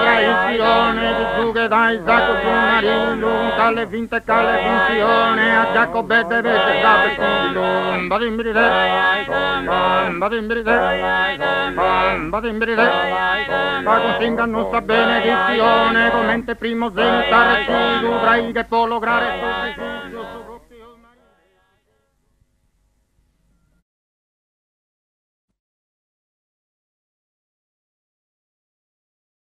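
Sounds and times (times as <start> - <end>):
canto a tenore vocal group singing: 0.0 - 21.0.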